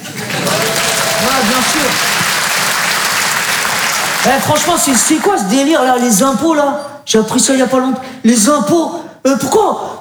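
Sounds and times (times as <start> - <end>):
audience applause: 0.0 - 6.0
speech: 1.7 - 2.1, 4.2 - 9.9.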